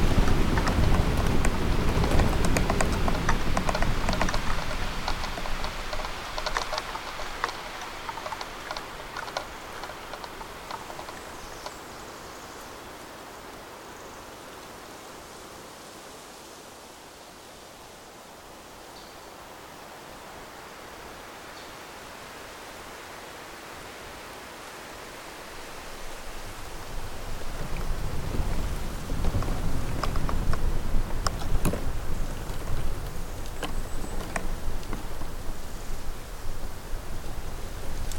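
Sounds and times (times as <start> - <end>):
bamboo rustling in gusting wind: 0.0 - 38.1.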